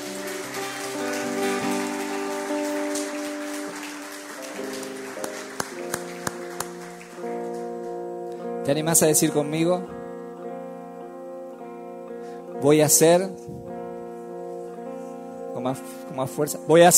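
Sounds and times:
audience applause: 0:00.0 - 0:08.0
speech: 0:08.7 - 0:10.0, 0:12.6 - 0:13.7, 0:15.6 - 0:16.9.

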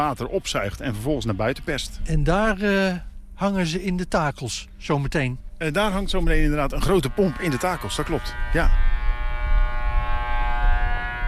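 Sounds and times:
speech: 0:00.0 - 0:08.9
horn signalling the pump is in place: 0:05.7 - 0:11.2.

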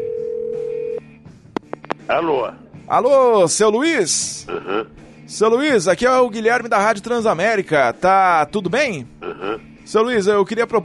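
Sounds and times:
telephone ringing tone: 0:00.0 - 0:01.0
speech: 0:02.1 - 0:10.8.

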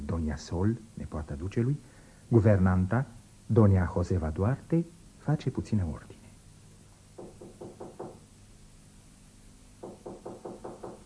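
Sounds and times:
speech: 0:00.2 - 0:06.2
knocking at a bedroom door in a radio drama: 0:07.2 - 0:08.3, 0:09.8 - 0:11.0.

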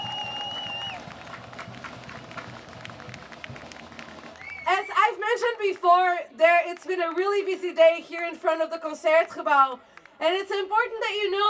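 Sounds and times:
high whistling tone: 0:00.0 - 0:01.0
crowd applause at an outdoor protest: 0:00.0 - 0:04.8
speech: 0:05.1 - 0:11.4.

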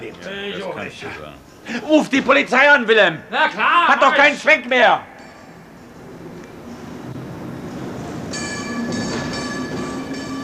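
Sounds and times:
speech: 0:00.1 - 0:05.1
tram approaching along its rails: 0:05.6 - 0:10.4
shrill metallic tram wheel squeals: 0:07.7 - 0:10.4.

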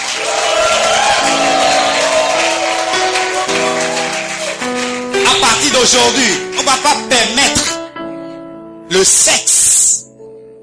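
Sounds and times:
church congregation cheering and shouting for joy during a service: 0:00.0 - 0:06.5
speech: 0:05.8 - 0:07.8, 0:09.0 - 0:09.6.

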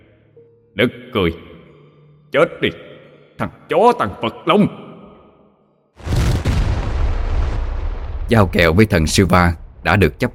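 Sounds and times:
speech: 0:00.8 - 0:01.5, 0:02.3 - 0:04.8, 0:08.3 - 0:10.3
explosion: 0:06.0 - 0:10.3
heavy rumble: 0:06.1 - 0:10.3.

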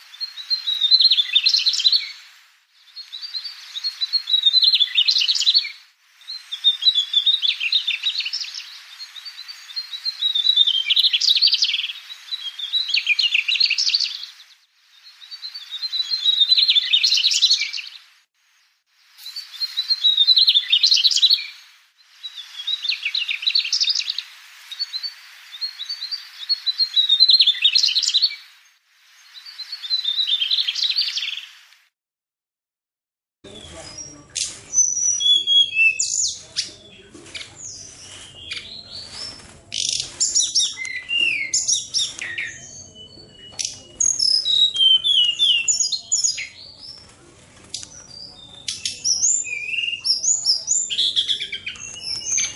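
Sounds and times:
bird twittering warble: 0:00.1 - 0:18.0, 0:19.0 - 0:31.6, 0:33.5 - 0:52.5.

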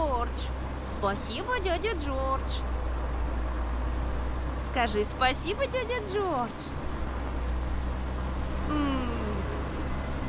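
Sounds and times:
car moving slowly along a road: 0:00.0 - 0:10.2
speech: 0:01.0 - 0:02.8, 0:04.7 - 0:06.8, 0:08.7 - 0:09.1
brief descending whine: 0:08.6 - 0:10.2.

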